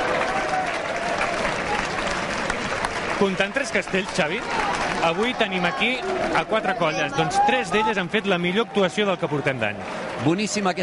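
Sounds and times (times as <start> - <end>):
crowd applause in town square: 0.0 - 10.8
speech: 3.2 - 10.8.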